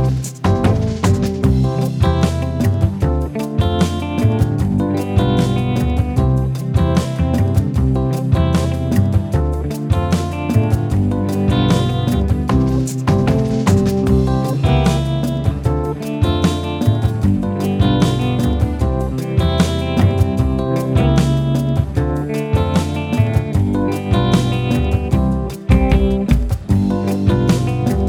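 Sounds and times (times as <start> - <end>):
calypso jazz backing track: 0.0 - 28.0.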